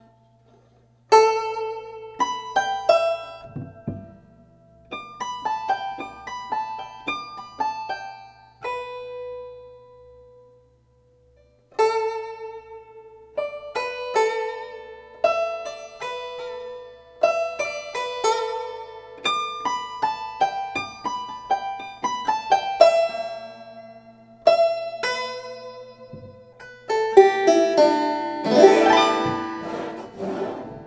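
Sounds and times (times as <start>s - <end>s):
guzheng improvisation: 0.0s - 10.2s, 11.7s - 30.8s.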